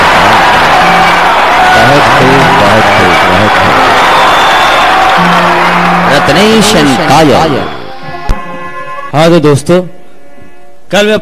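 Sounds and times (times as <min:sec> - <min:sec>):
audience applause: 0:00.0 - 0:08.0
speech: 0:06.4 - 0:07.8, 0:09.1 - 0:10.0, 0:10.9 - 0:11.2.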